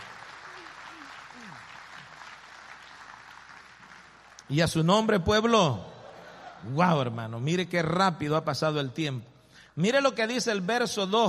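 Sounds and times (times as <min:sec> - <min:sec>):
audience applause: 0:00.0 - 0:04.5
speech: 0:04.5 - 0:05.9, 0:06.6 - 0:11.2.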